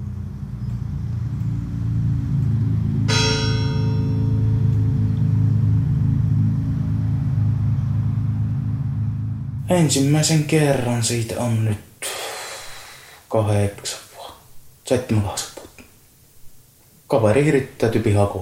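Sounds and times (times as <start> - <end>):
low rumble of traffic or engine noise: 0.0 - 11.6
church bell tolling a death knell: 3.1 - 6.1
speech: 9.7 - 12.2, 13.3 - 14.0, 14.9 - 15.5, 17.1 - 18.4.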